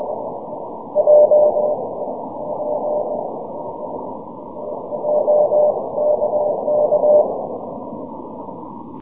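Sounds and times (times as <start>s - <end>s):
6m CW morse code signal: 0.9s - 1.8s, 4.7s - 7.4s.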